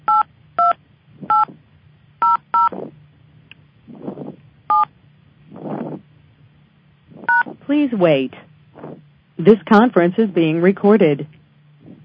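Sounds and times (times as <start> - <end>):
low hum: 0.0 - 12.0
telephone keypad beeps entering a PIN: 0.1 - 1.5, 2.2 - 2.7
speech: 7.7 - 8.4, 9.4 - 11.3.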